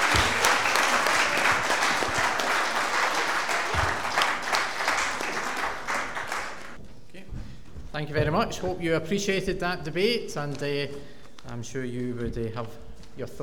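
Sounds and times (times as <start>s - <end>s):
audience applause: 0.0s - 6.8s
speech: 8.0s - 13.4s.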